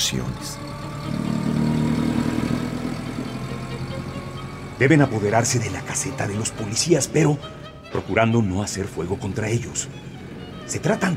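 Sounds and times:
car engine idling then pulling away: 0.0 - 11.1
speech: 0.1 - 1.3, 4.8 - 11.1.

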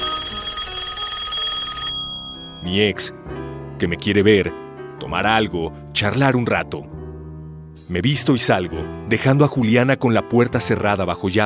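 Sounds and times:
telephone ringing: 0.0 - 2.8
speech: 2.6 - 7.0, 7.8 - 11.4.

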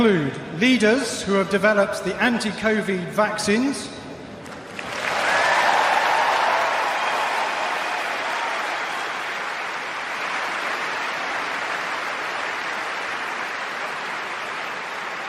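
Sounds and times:
speech: 0.0 - 4.0
standing ovation from Wimbledon tennis spectators: 4.4 - 15.2.

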